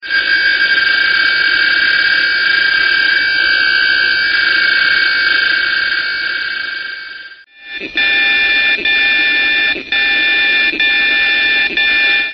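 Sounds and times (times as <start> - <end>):
DCF77 time signal through a direct conversion mixer: 0.0 - 12.3.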